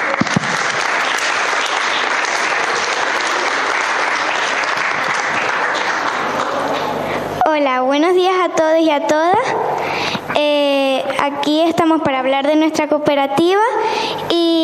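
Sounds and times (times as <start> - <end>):
audience applause: 0.0 - 7.1
speech: 7.6 - 14.6.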